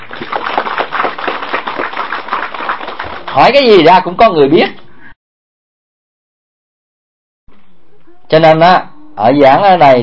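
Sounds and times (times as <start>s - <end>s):
audience applause: 0.0s - 3.6s
speech: 3.4s - 4.8s, 8.3s - 10.0s.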